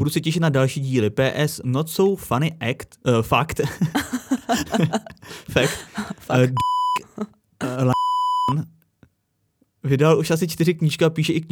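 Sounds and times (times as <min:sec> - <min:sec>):
speech: 0:00.0 - 0:08.8, 0:09.8 - 0:11.5
laughter: 0:03.6 - 0:08.0
censor bleeps: 0:06.6 - 0:07.1, 0:07.9 - 0:08.6.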